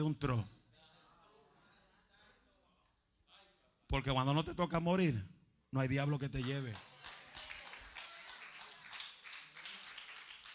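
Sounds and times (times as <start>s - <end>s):
speech: 0.0s - 0.6s, 3.9s - 6.9s
audience applause: 6.6s - 10.5s.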